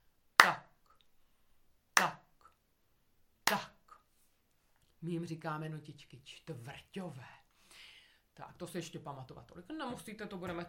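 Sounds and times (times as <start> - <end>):
hands clapping a rhythm: 0.4 - 0.7, 2.0 - 2.2, 3.5 - 3.7
speech: 3.5 - 3.7, 5.0 - 7.4, 8.4 - 10.6.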